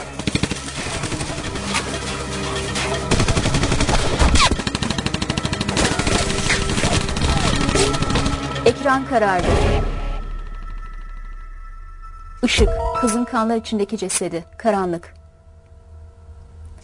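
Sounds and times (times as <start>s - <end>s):
gunfire: 0.0s - 2.0s, 2.8s - 8.5s
speech: 8.8s - 9.9s, 12.4s - 15.2s.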